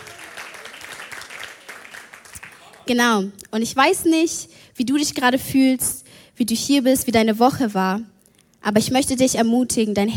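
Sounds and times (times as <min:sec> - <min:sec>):
faint audience applause at a Christian gathering: 0:00.0 - 0:02.9
speech: 0:02.9 - 0:10.1.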